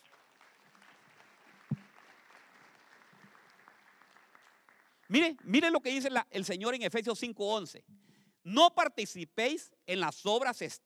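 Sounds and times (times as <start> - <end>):
audience applause: 0.0 - 5.3
speech: 5.1 - 10.8.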